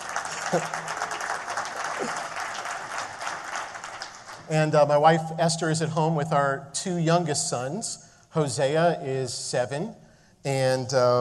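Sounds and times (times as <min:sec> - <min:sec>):
audience applause: 0:00.0 - 0:04.5
speech: 0:00.5 - 0:00.9, 0:04.5 - 0:11.1.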